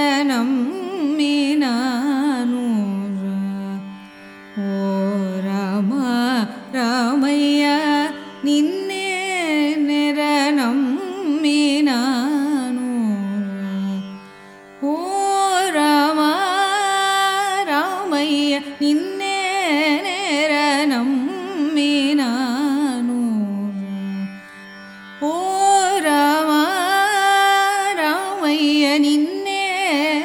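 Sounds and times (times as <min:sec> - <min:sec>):
Carnatic music song in raga Pantuvarali, rupakam tala: 0:00.0 - 0:30.2.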